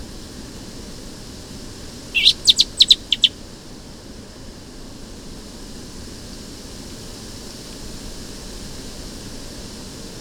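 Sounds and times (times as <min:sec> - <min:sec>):
Eurasian blackbird clicking call notes: 0:02.2 - 0:03.3.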